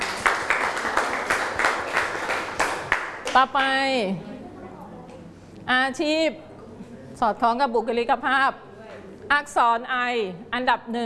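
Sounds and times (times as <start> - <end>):
classroom clapping for a student: 0.0 - 3.8
speech: 3.4 - 4.4, 5.7 - 6.5, 7.2 - 8.7, 9.3 - 11.0.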